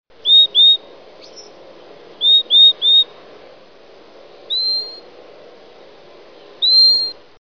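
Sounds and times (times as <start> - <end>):
Yellow-crowned euphonia whistled notes: 0.2 - 1.5, 2.2 - 3.1, 4.5 - 5.1, 6.6 - 7.2.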